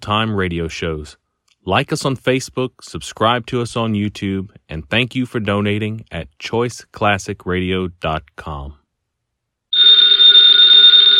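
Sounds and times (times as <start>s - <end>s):
speech: 0.0s - 8.8s
telephone bell ringing with a high steady metallic tone: 9.8s - 11.1s.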